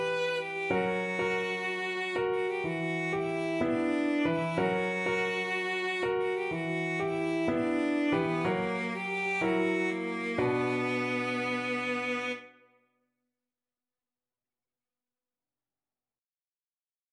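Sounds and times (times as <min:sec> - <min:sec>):
despairing piano and cello sketch: 0:00.0 - 0:12.5.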